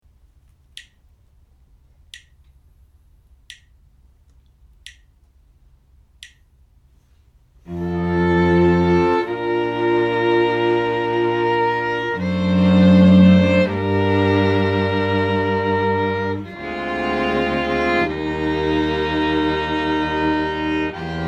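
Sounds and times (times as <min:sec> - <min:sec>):
string quartet playing: 0:07.6 - 0:21.2.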